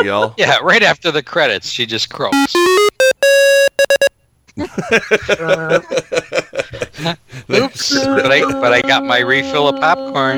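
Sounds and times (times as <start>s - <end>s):
speech: 0.0s - 3.2s, 4.6s - 10.3s
heart monitor flatline tone: 2.4s - 4.1s.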